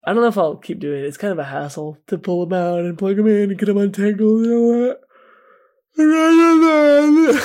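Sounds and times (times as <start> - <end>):
speech: 0.1 - 5.0, 6.0 - 7.4
person yawning: 6.0 - 7.4.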